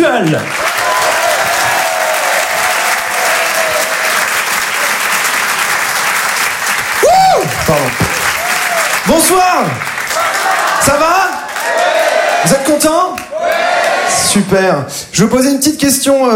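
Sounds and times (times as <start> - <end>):
audience at a stand-up comedy show applauding and cheering: 0.0 - 14.4
speech: 0.2 - 0.6, 9.0 - 9.9, 10.8 - 13.6, 14.2 - 16.3.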